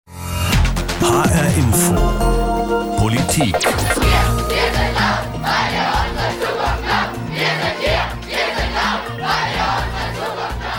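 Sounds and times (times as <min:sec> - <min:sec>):
speech: 0:01.0 - 0:05.8
protest crowd chanting at climate demonstration: 0:04.0 - 0:10.7.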